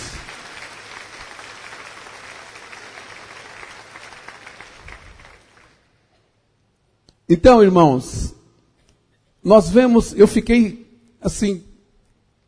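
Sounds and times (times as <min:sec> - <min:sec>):
audience applause: 0:00.0 - 0:05.9
speech: 0:07.3 - 0:08.4, 0:09.4 - 0:11.7.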